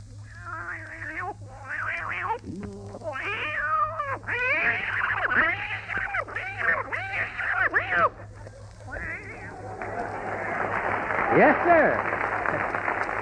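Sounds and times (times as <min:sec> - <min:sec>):
steady low hum: 0:00.0 - 0:13.1
vocal imitation of two cats fighting: 0:00.3 - 0:10.7
laughter: 0:09.3 - 0:13.1
speech: 0:11.4 - 0:12.1.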